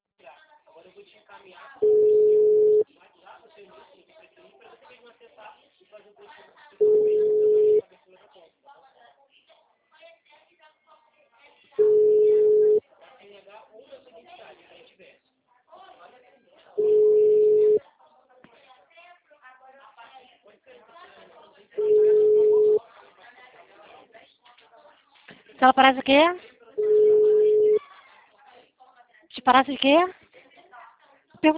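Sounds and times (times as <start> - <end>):
speech: 0.9 - 2.4, 25.6 - 26.5, 29.5 - 30.2
telephone tone: 1.8 - 2.8, 6.8 - 7.8, 11.8 - 12.8, 16.8 - 17.8, 21.8 - 22.8, 26.8 - 27.8.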